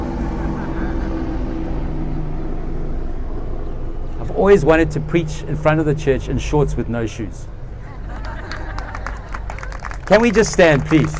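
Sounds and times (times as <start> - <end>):
helicopter flying overhead: 0.0 - 11.1
laughter: 0.1 - 1.4, 7.7 - 11.1
speech: 4.4 - 7.6, 10.1 - 11.1.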